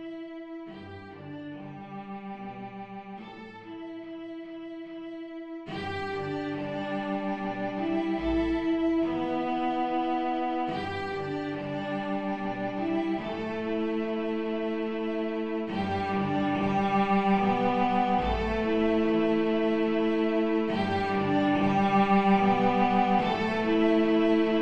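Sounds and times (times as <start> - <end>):
bass: 5.4 - 24.5.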